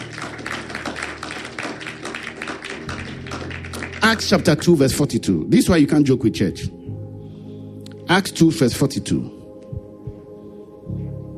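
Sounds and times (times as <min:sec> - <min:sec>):
audience clapping hands: 0:00.0 - 0:04.8
speech: 0:04.0 - 0:06.8, 0:08.1 - 0:09.4.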